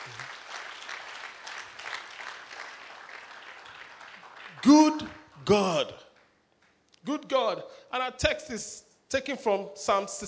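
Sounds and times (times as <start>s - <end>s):
audience clapping: 0.0s - 6.9s
speech: 4.6s - 6.0s, 7.0s - 10.2s.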